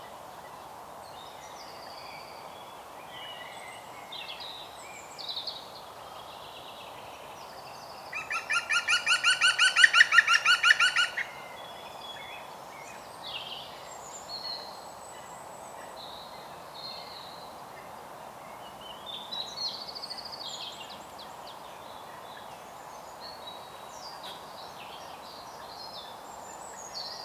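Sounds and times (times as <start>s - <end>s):
European green woodpecker Picus viridis laughing calls: 8.2s - 11.4s.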